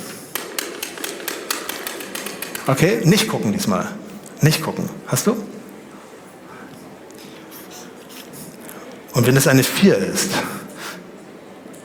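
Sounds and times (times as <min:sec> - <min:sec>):
dice being shaken: 0:00.5 - 0:02.9
speech: 0:02.6 - 0:05.5, 0:09.2 - 0:10.6.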